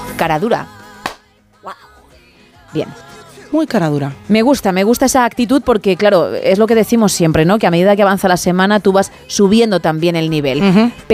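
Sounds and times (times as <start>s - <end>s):
speech: 0.2s - 0.8s, 1.6s - 1.9s, 2.7s - 11.1s
hand claps: 1.0s - 1.3s.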